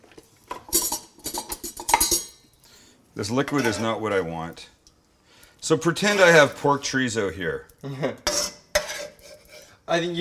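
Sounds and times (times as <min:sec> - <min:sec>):
metal utensils clattering in a kitchen drawer: 0:00.6 - 0:02.4
speech: 0:03.2 - 0:04.8, 0:05.7 - 0:08.3, 0:09.9 - 0:10.1.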